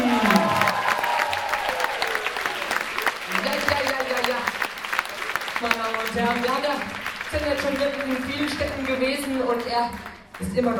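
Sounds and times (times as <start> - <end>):
cheers and shouts: 0.0 - 3.6
audience clapping: 0.0 - 10.7
speech: 6.3 - 10.7.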